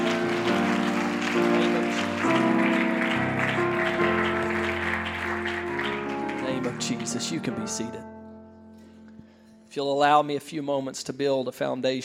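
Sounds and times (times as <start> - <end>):
audience clapping hands: 0.0 - 7.9
loud sustained organ or keyboard chords: 0.0 - 9.4
speech: 7.3 - 8.2, 9.8 - 12.0.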